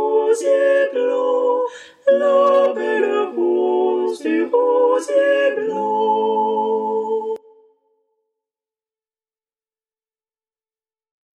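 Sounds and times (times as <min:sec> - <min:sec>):
sopranos singing: 0:00.0 - 0:07.6.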